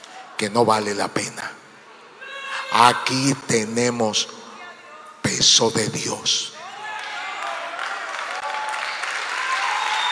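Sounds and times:
speech: 0.4s - 1.6s, 2.7s - 4.4s, 5.2s - 6.6s
audience applause: 6.6s - 10.0s.

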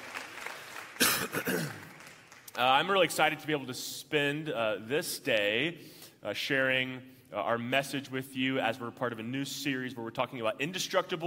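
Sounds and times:
audience applause: 0.0s - 2.6s
speech: 2.6s - 11.2s.

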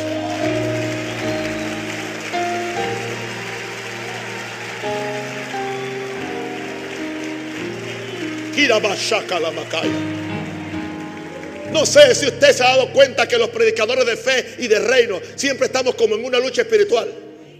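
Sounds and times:
applause: 0.0s - 14.0s
speech: 8.6s - 10.2s, 11.7s - 17.2s.

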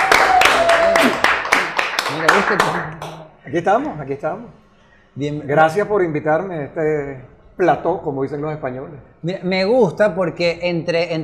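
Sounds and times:
audience applause: 0.0s - 3.3s
speech: 2.5s - 4.6s, 5.2s - 11.2s.

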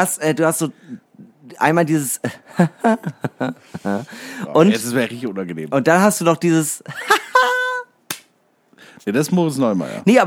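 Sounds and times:
speech: 0.0s - 7.5s, 9.0s - 10.2s
laughter: 2.2s - 4.3s, 6.9s - 7.9s
sharp loud hand claps: 8.1s - 8.4s.

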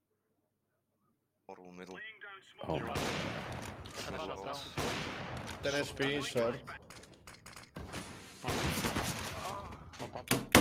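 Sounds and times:
speech: 1.5s - 6.8s
gunfire in a first-person shooter video game: 2.8s - 6.2s, 7.8s - 9.6s
blast: 4.7s - 5.4s, 8.4s - 9.5s.

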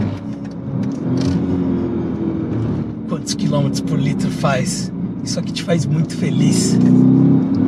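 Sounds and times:
V8 car engine accelerating: 0.0s - 7.6s
speech: 3.3s - 7.6s.

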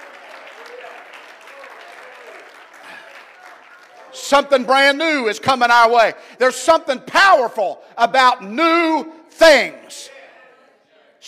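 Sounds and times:
audience clapping: 0.0s - 5.0s
speech: 4.3s - 10.1s.

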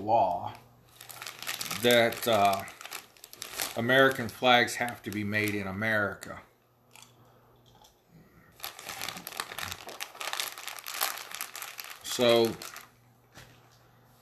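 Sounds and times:
speech: 0.0s - 0.6s, 1.8s - 2.8s, 3.8s - 6.5s, 12.2s - 12.7s
munching candy corn: 0.9s - 5.7s, 6.9s - 12.9s.

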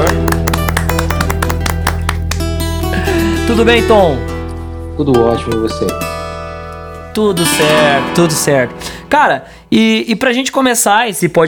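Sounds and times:
scattered hand clapping: 0.0s - 2.8s
speech: 3.5s - 4.3s, 5.0s - 6.2s, 7.2s - 11.4s.

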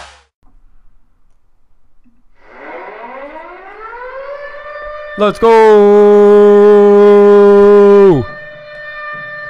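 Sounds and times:
loud siren winding down: 2.4s - 9.4s
speech: 5.2s - 6.5s.

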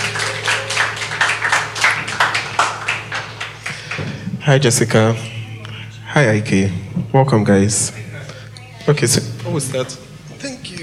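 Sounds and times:
audience clapping: 0.0s - 4.4s
speech: 4.5s - 5.3s, 6.1s - 8.1s, 8.8s - 10.0s.

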